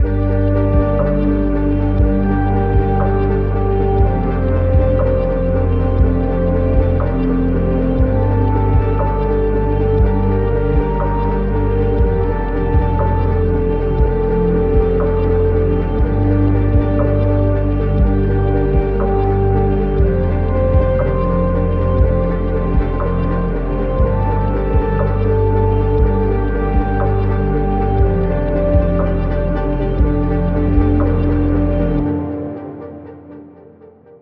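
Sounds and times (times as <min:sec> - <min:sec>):
ambient music: 0:00.0 - 0:34.2.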